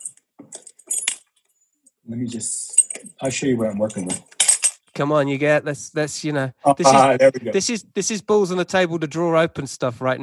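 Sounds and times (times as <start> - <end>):
keys jangling on a humidifier lock key: 0.0 - 1.3, 2.6 - 3.2, 3.9 - 5.0
speech: 2.1 - 4.3, 5.0 - 10.2.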